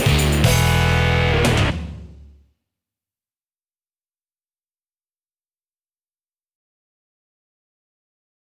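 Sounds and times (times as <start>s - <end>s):
karaoke music: 0.0s - 2.2s.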